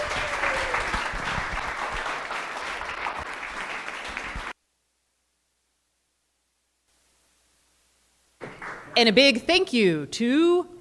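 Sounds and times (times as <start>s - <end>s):
audience applause: 0.0s - 4.6s, 8.4s - 9.0s
speech: 9.0s - 10.7s.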